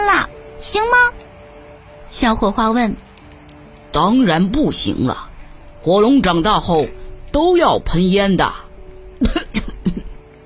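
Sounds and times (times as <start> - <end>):
speech: 0.2 - 1.2, 2.1 - 3.1, 3.9 - 8.6, 9.2 - 9.4
coughing: 9.2 - 10.3.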